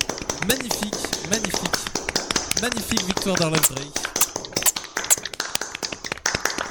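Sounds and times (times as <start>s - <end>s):
small group clapping hands celebrating a game winner: 0.0s - 6.7s
speech: 0.4s - 1.8s, 2.6s - 4.1s.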